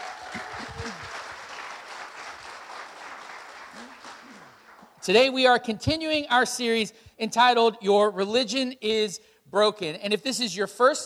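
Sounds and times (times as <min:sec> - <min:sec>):
congregation clapping at a Sunday church service welcoming first-time guests: 0:00.0 - 0:05.2
speech: 0:05.0 - 0:11.0.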